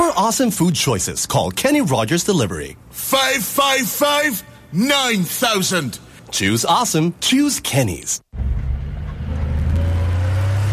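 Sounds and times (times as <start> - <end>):
speech: 0.2 - 8.2
diesel truck engine rumbling while driving: 8.3 - 10.7.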